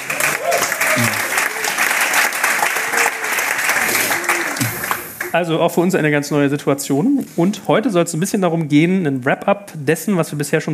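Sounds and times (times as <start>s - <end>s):
audience clapping: 0.0s - 5.4s
scattered cheers and crowd voices calling out: 0.0s - 5.4s
speech: 5.3s - 10.7s.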